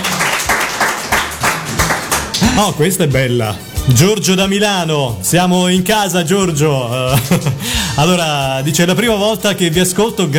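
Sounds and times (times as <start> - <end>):
hands clapping: 0.0 - 2.7, 7.1 - 7.6
speech: 2.5 - 10.3
laughter: 7.0 - 7.9.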